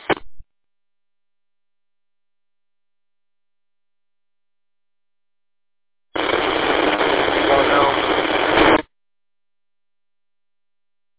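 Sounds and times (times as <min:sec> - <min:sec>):
radio static over distant repeater: 0:00.0 - 0:00.3, 0:06.2 - 0:08.8.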